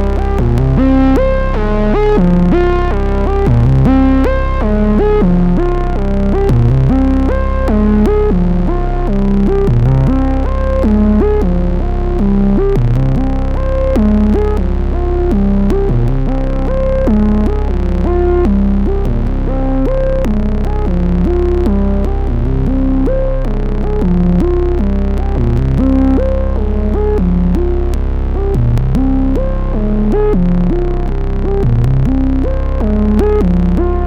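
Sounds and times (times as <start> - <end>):
Vermona 14 synthesizer solo: 0.0 - 34.0.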